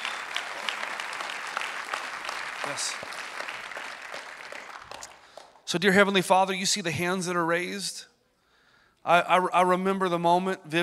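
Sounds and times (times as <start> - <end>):
audience applause: 0.0 - 5.6
speech: 2.6 - 3.3, 5.7 - 8.1, 9.0 - 10.8.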